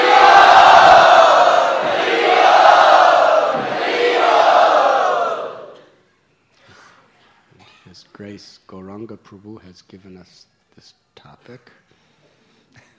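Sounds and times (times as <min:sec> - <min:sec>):
crowd cheering and shouting to welcome a speaker: 0:00.0 - 0:05.9
speech: 0:08.4 - 0:11.8.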